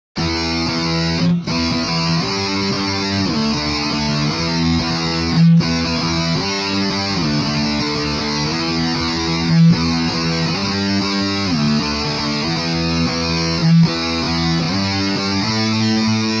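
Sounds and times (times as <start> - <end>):
electric guitar, shifting: 0.2 - 16.3.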